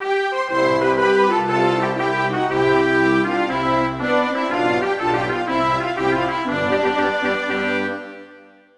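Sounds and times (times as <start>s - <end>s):
national anthem: 0.0s - 8.7s.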